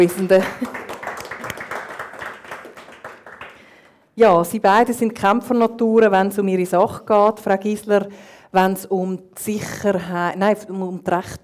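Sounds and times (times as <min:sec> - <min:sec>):
speech: 0:00.0 - 0:00.8, 0:04.2 - 0:11.4
audience applause: 0:00.4 - 0:03.9.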